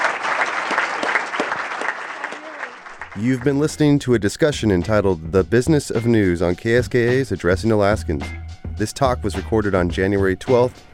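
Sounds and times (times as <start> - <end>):
audience applause: 0.0 - 3.8
speech: 3.2 - 10.9.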